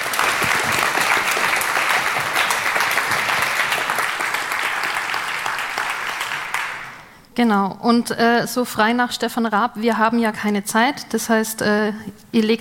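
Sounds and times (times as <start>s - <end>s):
audience applause: 0.0s - 7.1s
speech: 7.4s - 12.5s.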